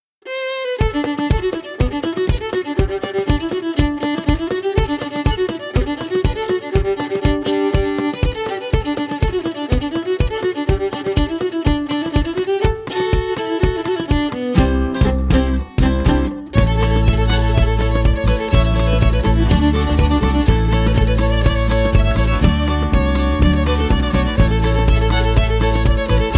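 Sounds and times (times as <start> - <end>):
instrumental music: 0.2 - 26.3.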